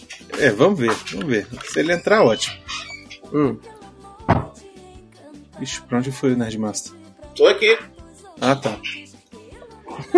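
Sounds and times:
speech: 0.4 - 3.7, 5.6 - 9.1, 10.0 - 10.1
door slamming: 4.3 - 4.6.

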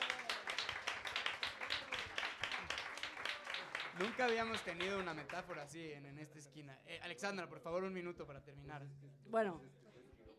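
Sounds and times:
audience applause: 0.0 - 5.6
speech: 4.0 - 9.8.

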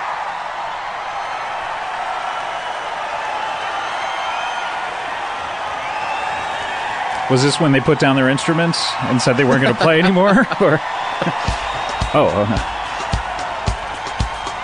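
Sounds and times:
live concert audience cheering: 0.0 - 14.6
faint high whistles and whoops: 0.8 - 7.3, 10.7 - 14.6
speech: 7.3 - 12.8
laughter: 9.0 - 12.6.

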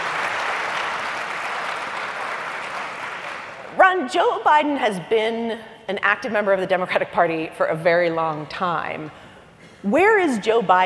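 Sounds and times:
audience applause: 0.0 - 3.6
speech: 3.8 - 9.2, 9.8 - 10.8.

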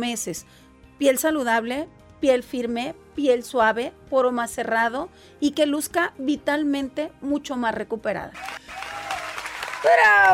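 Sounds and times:
speech: 0.0 - 8.9, 9.8 - 10.3
loud cheering voice: 8.4 - 10.3
studio audience applause: 8.4 - 10.3.

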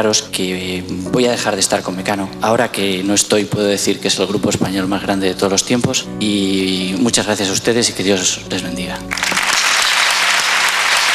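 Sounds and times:
speech: 0.0 - 9.5
audience applause: 9.1 - 11.1.

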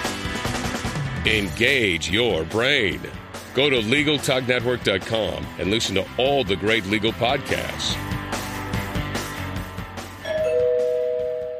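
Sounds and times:
busy music: 0.0 - 11.5
speech: 1.2 - 8.1
doorbell two-note chime: 10.2 - 11.5.

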